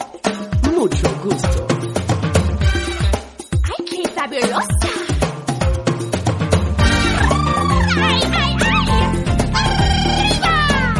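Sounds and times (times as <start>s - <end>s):
funny Mexican song: 0.3s - 10.9s.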